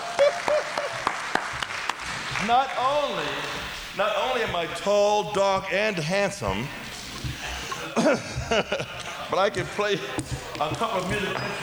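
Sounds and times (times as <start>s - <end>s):
laughter: 0.0s - 1.3s, 7.4s - 11.6s
audience clapping: 0.0s - 3.6s
speech: 2.4s - 6.9s, 8.0s - 11.6s.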